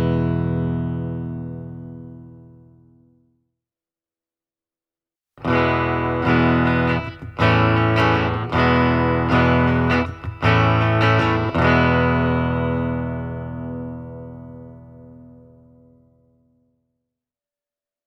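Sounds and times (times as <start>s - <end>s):
Schecter Stealth C 1 electric guitar played clean: 0.0s - 3.2s, 5.4s - 16.5s.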